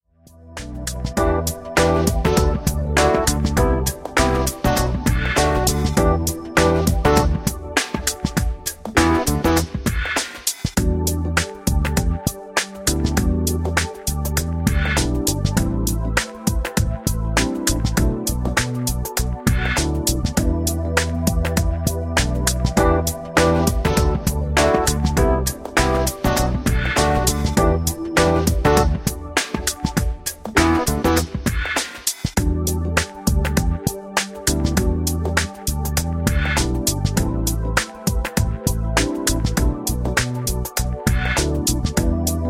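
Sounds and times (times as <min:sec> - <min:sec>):
backing track without flute: 0:00.6 - 0:42.4.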